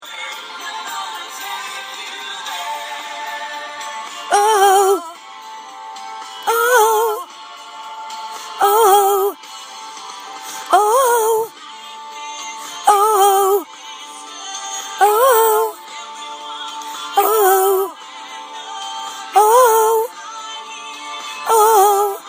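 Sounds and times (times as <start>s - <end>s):
voice singing ooh a third above: 4.3s - 5.2s, 6.4s - 7.3s, 8.6s - 9.4s, 10.6s - 11.5s, 12.8s - 13.7s, 14.9s - 15.9s, 17.2s - 18.0s, 19.3s - 20.2s, 21.4s - 22.2s.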